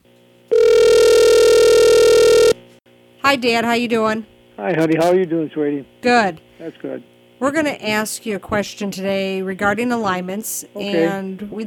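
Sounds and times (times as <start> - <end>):
telephone ring tone: 0.5 - 2.6
speech: 3.3 - 11.6.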